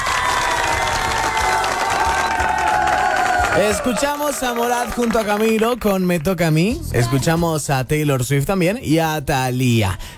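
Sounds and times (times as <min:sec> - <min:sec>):
crowd cheering and shouting: 0:00.0 - 0:05.6
audience clapping: 0:00.0 - 0:06.6
speech: 0:03.6 - 0:10.1.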